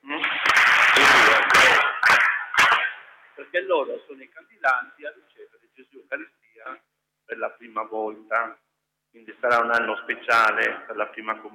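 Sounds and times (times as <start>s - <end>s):
group clapping in unison: 0.1s - 3.1s
speech: 3.6s - 8.6s, 9.2s - 11.5s.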